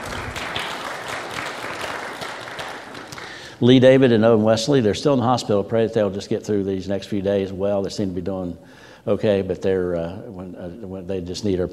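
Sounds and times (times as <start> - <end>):
audience applauding: 0.0 - 3.6
speech: 3.6 - 11.7.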